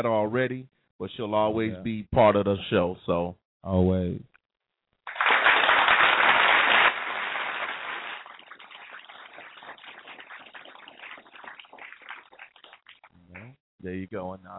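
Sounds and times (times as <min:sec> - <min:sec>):
speech: 0:00.0 - 0:04.3, 0:13.8 - 0:14.5
slow sparse clapping: 0:05.1 - 0:13.6.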